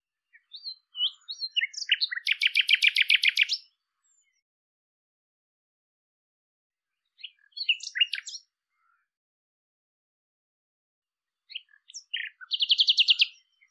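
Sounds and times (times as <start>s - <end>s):
bird calling: 0.3s - 3.6s, 7.2s - 8.4s, 11.5s - 13.6s.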